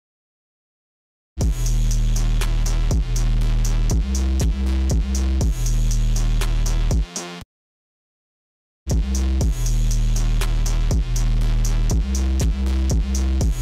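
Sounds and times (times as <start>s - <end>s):
instrumental music: 1.4s - 7.4s, 8.9s - 13.6s.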